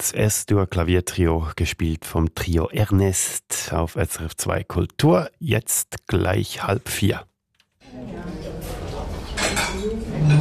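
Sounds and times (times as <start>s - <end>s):
speech: 0.0s - 7.3s
dishes, pots and cutlery clinking in a busy kitchen: 8.2s - 10.4s.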